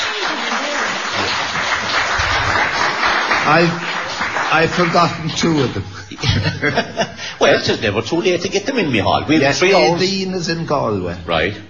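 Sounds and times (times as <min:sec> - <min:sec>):
round of applause: 0:00.0 - 0:05.9
laughter: 0:01.2 - 0:08.0
speech: 0:03.5 - 0:03.9, 0:04.5 - 0:11.6.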